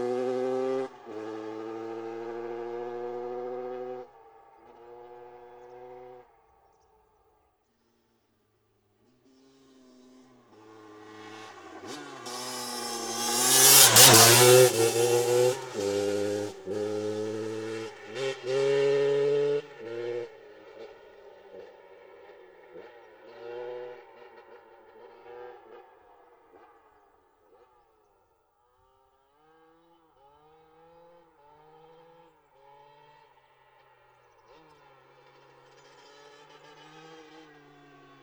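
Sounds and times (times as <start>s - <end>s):
KTM EXC 650 motorcycle engine: 0.0s - 6.3s, 9.5s - 25.8s.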